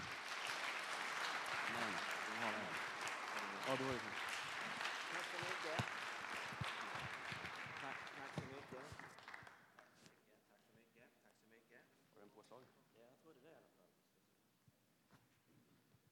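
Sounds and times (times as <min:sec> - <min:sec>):
warm applause: 0:00.0 - 0:10.1.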